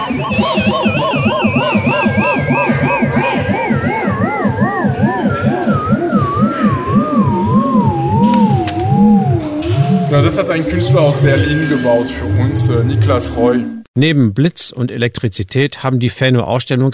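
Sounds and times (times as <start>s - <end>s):
electronic sound bench buzzy warbling tone reacting to touch: 0.0s - 13.9s
speech: 0.1s - 0.8s, 10.2s - 16.9s.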